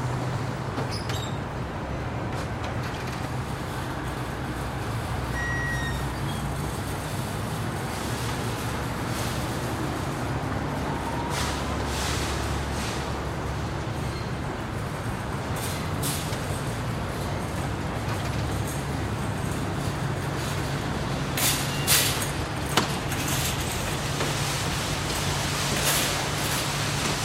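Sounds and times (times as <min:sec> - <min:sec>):
traffic by a supermarket parking lot: 0:00.0 - 0:27.2
supermarket shopping carts in a store parking lot: 0:06.4 - 0:27.2.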